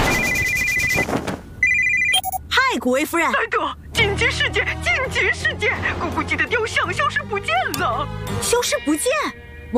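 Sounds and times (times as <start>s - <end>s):
phone ringing: 0.1s - 2.4s
speech: 2.8s - 9.7s.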